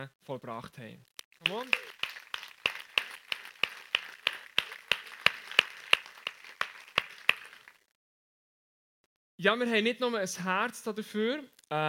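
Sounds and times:
speech: 0.0s - 2.0s, 9.4s - 11.8s
audience applause: 1.4s - 7.8s.

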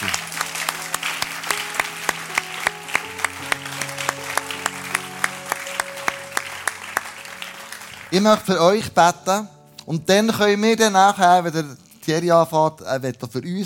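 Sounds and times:
big audience applause: 0.0s - 8.8s
speech: 8.1s - 13.6s.

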